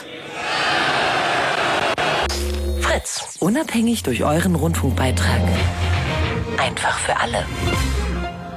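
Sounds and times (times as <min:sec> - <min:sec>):
crowd cheering: 0:00.0 - 0:02.7
speech: 0:03.4 - 0:06.0, 0:06.6 - 0:08.1.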